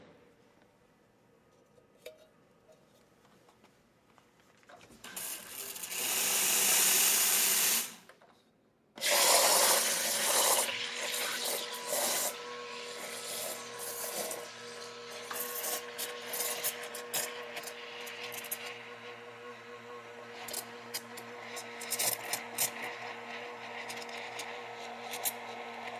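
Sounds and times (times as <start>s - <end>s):
cappuccino coffee machine: 4.9s - 8.1s, 9.0s - 25.9s.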